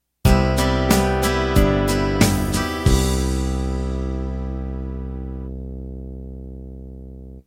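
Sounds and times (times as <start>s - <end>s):
country ballad ending: 0.3s - 5.8s.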